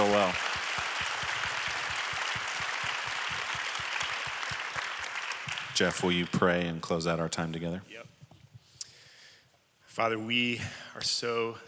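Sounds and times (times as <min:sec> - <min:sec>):
round of applause: 0:00.0 - 0:06.4
speech: 0:05.8 - 0:08.2, 0:10.0 - 0:11.6.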